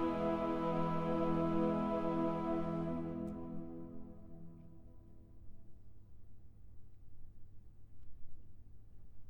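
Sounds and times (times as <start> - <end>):
chorale: 0.0 - 5.6.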